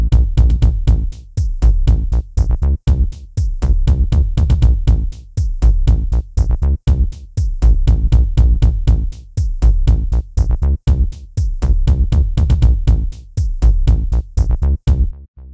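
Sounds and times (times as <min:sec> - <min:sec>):
steady beats: 0:00.1 - 0:15.1.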